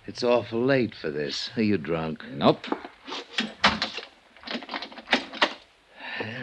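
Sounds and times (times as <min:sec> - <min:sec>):
speech: 0:00.1 - 0:03.3
door pushed shut: 0:02.6 - 0:05.6
door lock clicking and rattling: 0:02.6 - 0:05.7.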